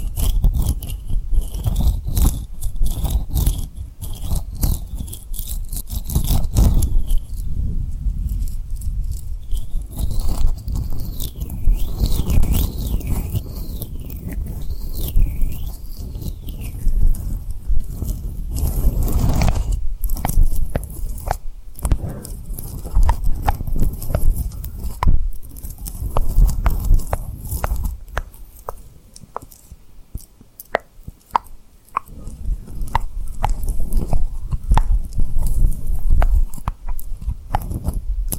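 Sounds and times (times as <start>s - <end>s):
tapping and rubbing on rhinestones: 0.0s - 7.5s, 8.2s - 38.3s.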